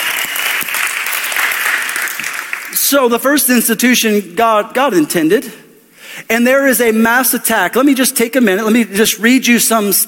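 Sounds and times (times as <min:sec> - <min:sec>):
audience applause: 0:00.0 - 0:02.8
speech: 0:02.9 - 0:05.6, 0:06.2 - 0:10.0.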